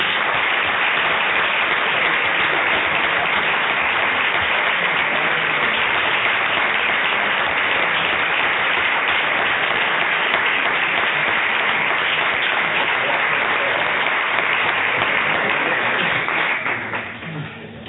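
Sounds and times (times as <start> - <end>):
audience applause: 0.0 - 17.5.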